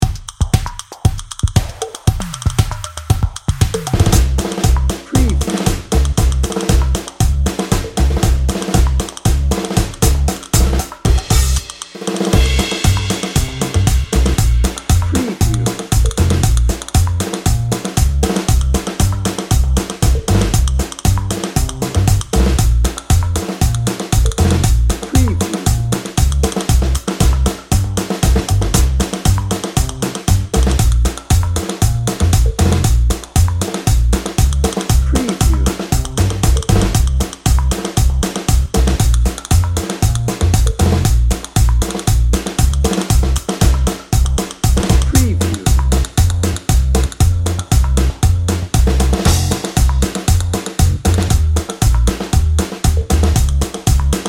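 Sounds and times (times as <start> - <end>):
drum and bass music: 0.0 - 54.2.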